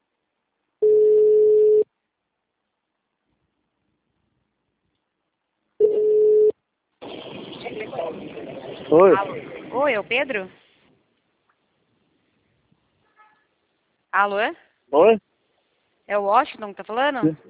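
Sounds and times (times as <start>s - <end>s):
telephone ringback tone while a call is placed: 0.8s - 1.9s, 5.8s - 6.5s
rough telephone line noise: 7.0s - 11.6s
speech: 8.9s - 10.6s, 14.1s - 15.3s, 16.1s - 17.4s.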